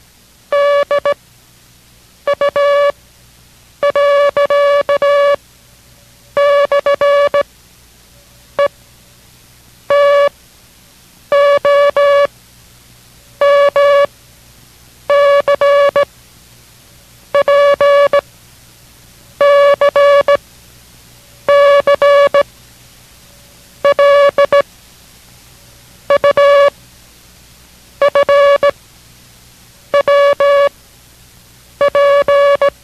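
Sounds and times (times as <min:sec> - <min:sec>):
Morse code characters keyed on a single steady mid-pitched tone: 0:00.5 - 0:01.2, 0:02.3 - 0:02.9, 0:03.8 - 0:05.4, 0:06.4 - 0:07.4, 0:09.9 - 0:10.3, 0:11.3 - 0:12.3, 0:13.4 - 0:14.1, 0:15.1 - 0:16.0, 0:17.4 - 0:18.2, 0:19.4 - 0:20.4, 0:21.5 - 0:22.4, 0:23.8 - 0:24.6, 0:26.1 - 0:26.7, 0:28.0 - 0:28.7, 0:30.0 - 0:30.7, 0:31.8 - 0:32.8.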